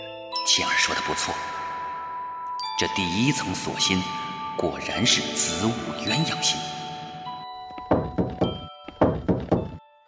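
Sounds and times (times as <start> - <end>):
speech: 0.5 - 1.6, 2.8 - 6.8
knocking on a door: 7.8 - 9.8.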